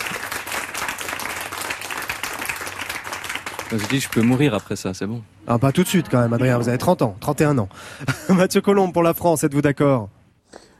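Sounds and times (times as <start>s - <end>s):
audience applause: 0.0s - 4.7s
speech: 3.7s - 10.2s.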